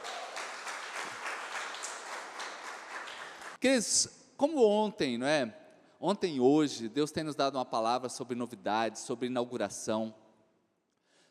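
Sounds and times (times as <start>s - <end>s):
audience applause: 0.0s - 3.6s
speech: 3.6s - 10.2s.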